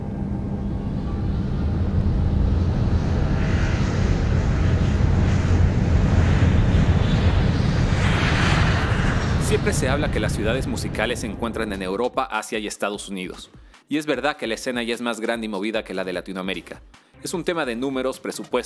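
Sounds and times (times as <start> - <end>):
airplane taking off: 0.0 - 11.9
speech: 9.8 - 18.6.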